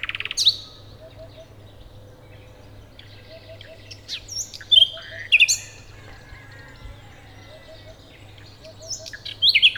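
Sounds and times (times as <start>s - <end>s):
common nightingale Luscinia megarhynchos song: 0.0s - 9.7s.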